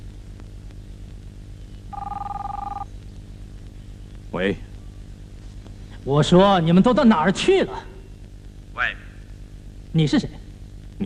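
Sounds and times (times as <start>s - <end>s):
low constant hum: 0.0s - 11.0s
telephone ringing with a warbling electronic tone: 1.9s - 2.9s
speech: 4.4s - 4.7s, 6.0s - 7.9s, 10.0s - 10.4s.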